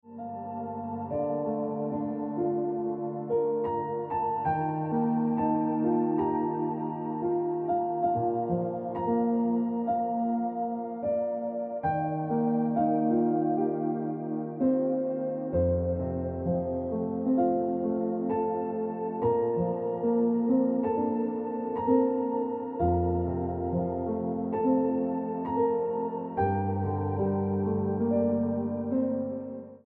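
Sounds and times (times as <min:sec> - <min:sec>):
piano ringtone music: 0:00.0 - 0:29.8.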